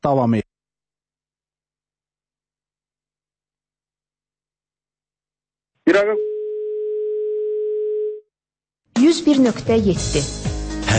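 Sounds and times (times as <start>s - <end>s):
speech: 0.0s - 0.5s, 5.9s - 6.3s, 9.0s - 10.9s
telephone dial tone after a failed call: 6.2s - 8.2s.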